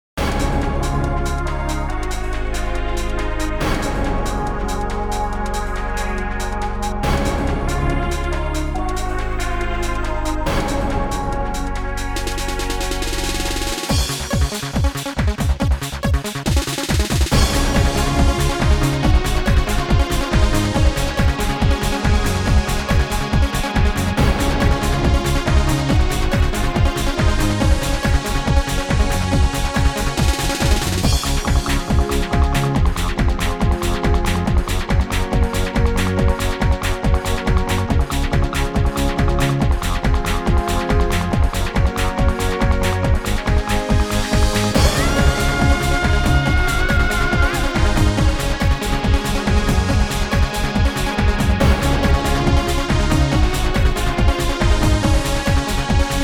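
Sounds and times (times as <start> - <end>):
romantic dance music at 140 bpm: 0.3 - 56.2.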